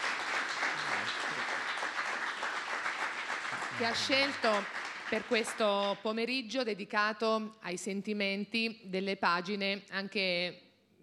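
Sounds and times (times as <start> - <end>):
audience applause: 0.0 - 5.9
speech: 3.8 - 10.6.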